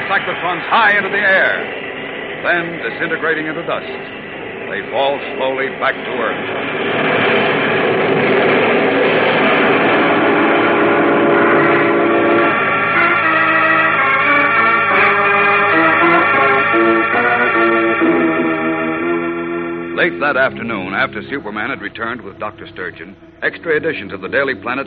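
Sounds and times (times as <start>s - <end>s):
train rumbling and clattering at railroad station: 0.0s - 24.8s
speech: 0.1s - 7.4s, 20.0s - 24.8s
train horn or whistle: 9.6s - 24.8s.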